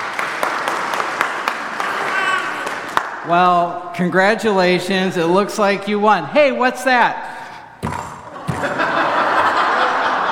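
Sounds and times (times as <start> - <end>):
crowd clapping: 0.0 - 3.2
speech: 3.2 - 7.2
laughter: 8.2 - 10.2.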